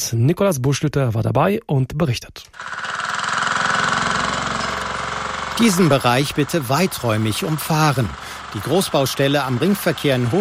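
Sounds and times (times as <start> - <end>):
speech: 0.1 - 2.9, 5.6 - 10.3
engine running at a road construction site: 2.6 - 10.3.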